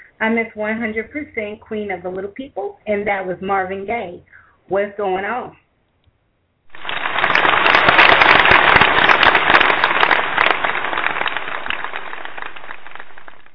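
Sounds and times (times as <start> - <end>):
speech: 0.2 - 5.6
hands clapping: 6.7 - 13.5.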